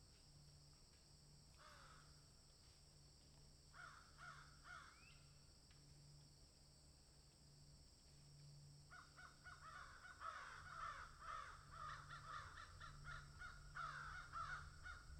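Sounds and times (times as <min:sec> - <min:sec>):
crow giving hoarse downslurred caws: 0:01.6 - 0:02.1, 0:03.8 - 0:05.1, 0:08.9 - 0:15.1.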